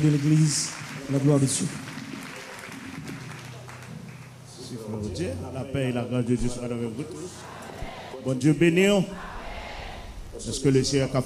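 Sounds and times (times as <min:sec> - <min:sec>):
speech: 0:00.0 - 0:01.9, 0:04.9 - 0:07.5, 0:08.2 - 0:09.3, 0:10.4 - 0:11.2
audience applause: 0:00.0 - 0:04.5.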